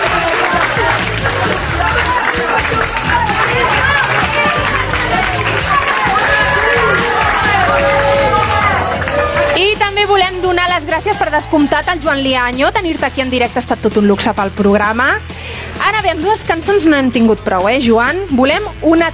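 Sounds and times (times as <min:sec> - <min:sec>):
audience applause: 0:00.0 - 0:09.8
speech: 0:11.0 - 0:19.1.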